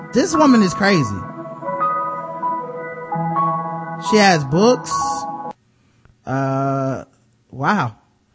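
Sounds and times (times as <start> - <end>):
loud tinkly music playing from a website: 0.0 - 5.5
speech: 0.1 - 1.3, 4.0 - 5.3, 6.3 - 8.0.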